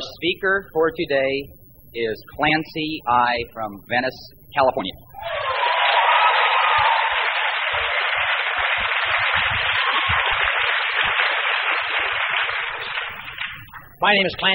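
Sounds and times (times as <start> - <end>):
speech: 0.2 - 5.4, 14.0 - 14.5
large audience applause: 5.2 - 13.7.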